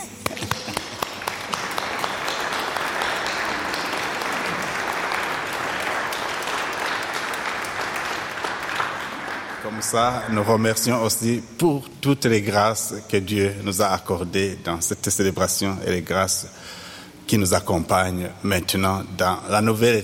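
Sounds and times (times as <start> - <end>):
audience applause: 0.0 - 10.8
speech: 9.8 - 20.0.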